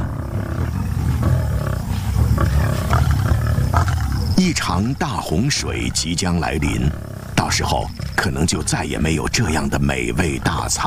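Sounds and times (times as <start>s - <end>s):
lions roaring: 0.0s - 5.0s, 5.7s - 8.7s
speech: 4.4s - 10.8s.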